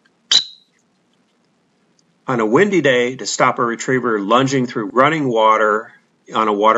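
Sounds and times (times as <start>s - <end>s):
short chirp on a dog whistle: 0.3s - 0.7s
speech: 2.3s - 6.7s.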